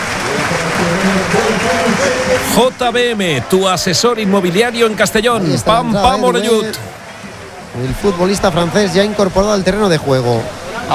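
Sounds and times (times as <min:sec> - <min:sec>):
Castalia stadium crowd applauding footballer Ronaldo Pompeu: 0:00.0 - 0:06.9
speech: 0:01.0 - 0:07.0, 0:07.8 - 0:10.9.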